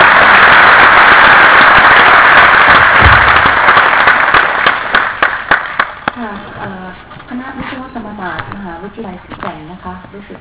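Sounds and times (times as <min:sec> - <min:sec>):
crowd clapping loudly: 0:00.0 - 0:06.3.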